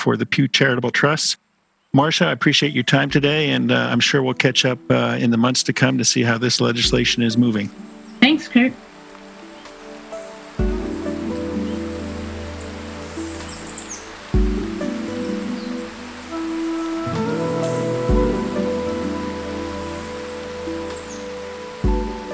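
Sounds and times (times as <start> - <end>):
speech: 0.0 - 8.9
waterfalls of Yosemite National Park roaring: 5.8 - 22.3.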